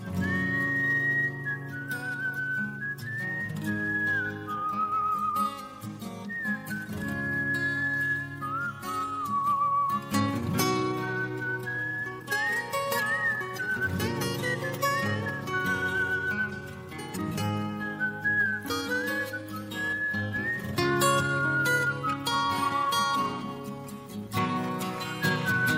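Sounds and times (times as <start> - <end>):
whistle: 0.0 - 25.7.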